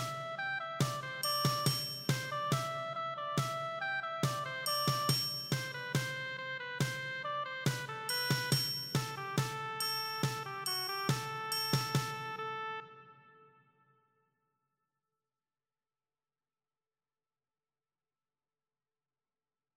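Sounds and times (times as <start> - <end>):
triangle: 0.0 - 12.4.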